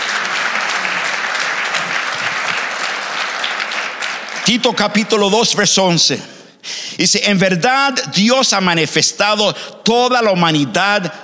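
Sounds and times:
loud sustained applause from a large crowd: 0.0s - 5.3s
speech: 4.5s - 11.2s.

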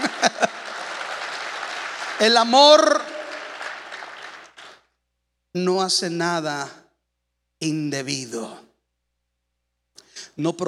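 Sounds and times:
laughter: 0.0s - 2.2s
audience applause: 0.0s - 4.8s
speech: 2.2s - 3.1s, 5.5s - 6.8s, 7.6s - 8.7s, 10.4s - 10.6s.

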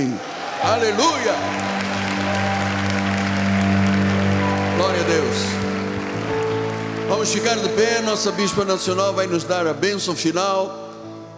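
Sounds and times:
speech: 0.0s - 2.5s, 4.8s - 5.7s, 7.1s - 10.9s
applause: 0.0s - 9.3s.

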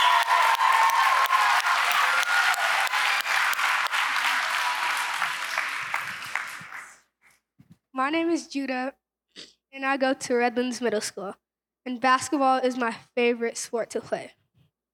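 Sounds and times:
audience applause for a speaker: 0.0s - 7.0s
speech: 8.1s - 14.4s.

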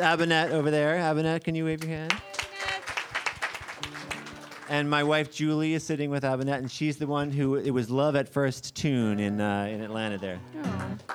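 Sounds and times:
speech: 0.0s - 2.3s, 4.7s - 11.1s
audience clapping: 1.8s - 5.7s, 10.6s - 11.1s.

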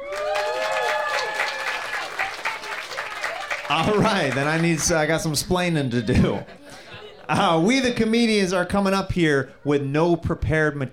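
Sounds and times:
whistles and cheers: 0.0s - 3.7s
audience applause: 0.0s - 5.6s
laughter: 1.4s - 8.0s
speech: 3.7s - 6.6s, 7.3s - 10.9s.

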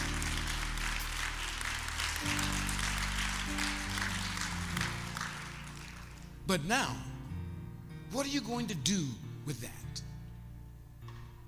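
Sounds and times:
audience hand clapping: 0.0s - 6.5s
speech: 6.5s - 7.1s, 8.1s - 10.1s.

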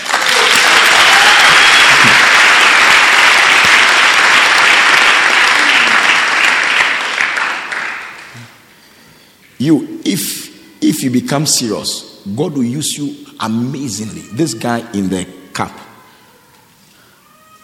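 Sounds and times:
church congregation clapping loudly: 0.0s - 8.6s
speech: 9.6s - 15.8s.

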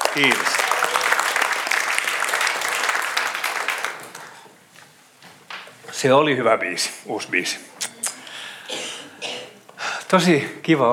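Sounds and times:
audience applauding worship band: 0.0s - 4.4s
speech: 0.2s - 0.6s, 6.0s - 7.9s, 10.1s - 10.9s.

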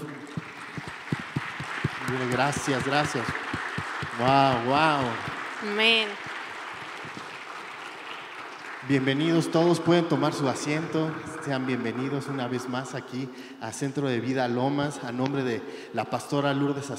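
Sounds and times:
audience applauding: 0.0s - 13.2s
speech: 2.1s - 3.5s, 4.2s - 6.3s, 8.9s - 16.9s.

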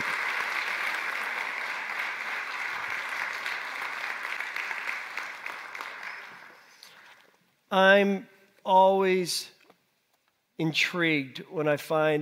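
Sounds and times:
audience applause: 0.0s - 7.0s
speech: 7.7s - 9.6s, 10.6s - 12.1s.

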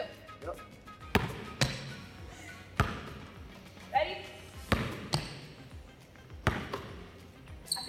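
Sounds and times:
speech: 0.4s - 0.8s
basketball thumping on the floor during bounce-pass practice: 1.1s - 2.0s, 2.8s - 3.3s, 4.6s - 5.6s, 6.3s - 7.0s.

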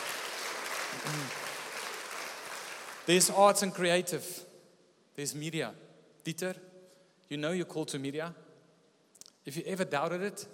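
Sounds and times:
crowd clapping and cheering: 0.0s - 3.4s
person whooping: 1.0s - 1.4s
speech: 1.0s - 1.4s, 3.1s - 4.5s, 5.2s - 6.7s, 7.3s - 8.4s, 9.5s - 10.5s.

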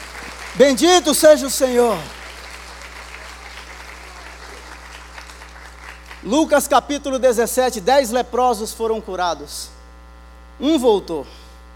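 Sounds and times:
audience applauding: 0.0s - 6.6s
low steady hum: 0.0s - 11.7s
speech: 0.6s - 2.2s, 6.3s - 9.8s, 10.6s - 11.4s.

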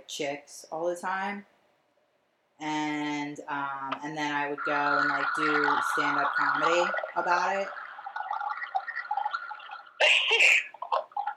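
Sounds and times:
speech: 0.1s - 1.5s, 2.6s - 7.8s
tap water running while washing hands: 4.2s - 11.3s.

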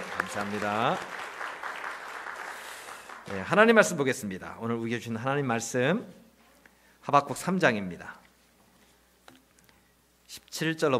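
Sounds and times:
audience applause: 0.0s - 3.8s
speech: 0.3s - 1.2s, 3.3s - 6.2s, 7.0s - 8.2s, 10.3s - 10.9s.

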